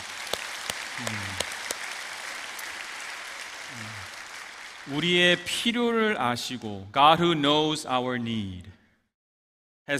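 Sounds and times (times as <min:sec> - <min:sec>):
audience applause: 0:00.0 - 0:05.5
speech: 0:01.0 - 0:01.4, 0:04.8 - 0:08.7.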